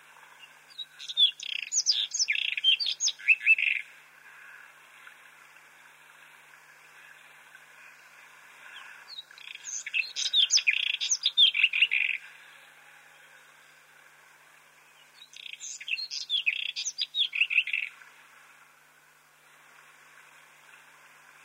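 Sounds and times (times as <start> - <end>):
White-throated robin song of chirps, slurred whistles and buzzy trill: 0.4 - 4.0, 8.8 - 13.8, 14.8 - 18.0.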